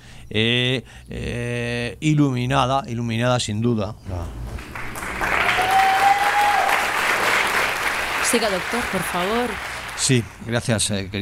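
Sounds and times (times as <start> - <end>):
speech: 0.3 - 4.7, 8.3 - 11.2
audience applause: 4.4 - 10.3.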